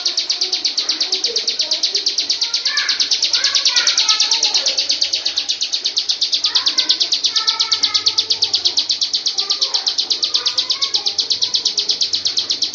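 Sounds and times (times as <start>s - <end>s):
bird song of rapid high chirped notes: 0.0s - 12.7s.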